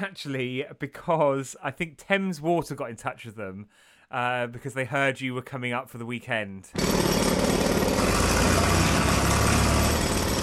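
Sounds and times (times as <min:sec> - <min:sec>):
speech: 0:00.0 - 0:08.5
drill running outside during road works: 0:06.8 - 0:10.4.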